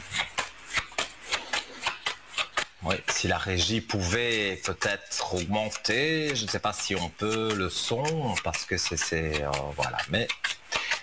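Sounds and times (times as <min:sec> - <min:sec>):
playing cards shuffled in papery riffles: 0:00.0 - 0:11.0
speech: 0:02.8 - 0:10.4.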